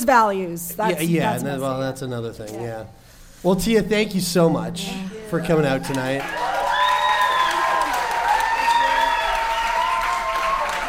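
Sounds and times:
speech: 0.0s - 6.5s
audience applause: 5.5s - 10.8s.

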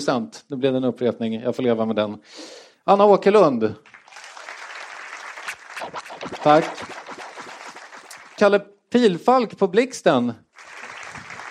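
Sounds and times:
speech: 0.0s - 3.9s, 6.4s - 6.9s, 8.4s - 10.4s
audience applause: 3.9s - 8.4s, 10.6s - 11.4s.

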